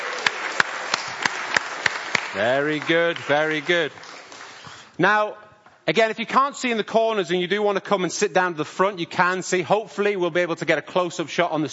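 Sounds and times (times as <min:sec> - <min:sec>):
audience cheering: 0:00.0 - 0:04.0
audience applauding: 0:00.0 - 0:04.9
speech: 0:02.3 - 0:04.1, 0:05.0 - 0:11.7.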